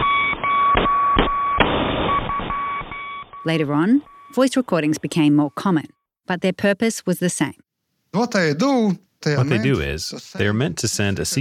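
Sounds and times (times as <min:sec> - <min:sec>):
Morse code beeps: 0:00.0 - 0:06.1
speech: 0:03.4 - 0:11.3.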